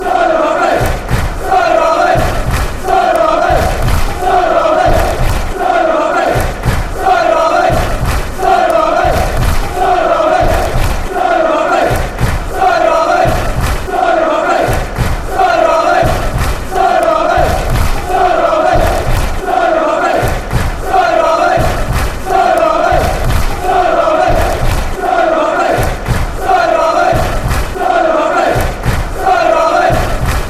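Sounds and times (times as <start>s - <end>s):
fans chanting: 0.0s - 30.4s.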